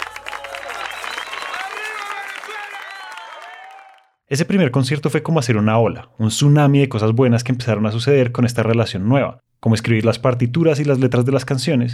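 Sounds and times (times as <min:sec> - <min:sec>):
audience applause: 0:00.0 - 0:04.2
speech: 0:04.3 - 0:11.9.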